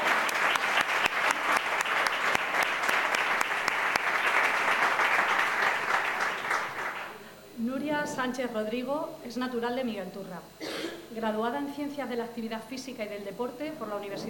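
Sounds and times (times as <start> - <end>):
audience applause: 0.0 - 7.2
speech: 8.2 - 14.2.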